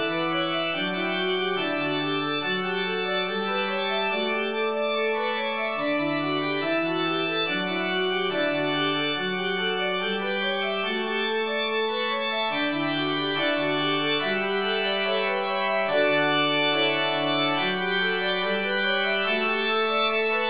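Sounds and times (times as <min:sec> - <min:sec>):
organ: 0:00.0 - 0:20.4.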